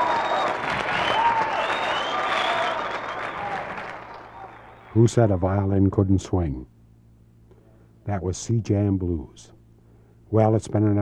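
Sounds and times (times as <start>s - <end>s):
audience applause: 0.0s - 5.1s
speech: 5.0s - 6.8s, 8.0s - 9.6s, 10.3s - 11.0s.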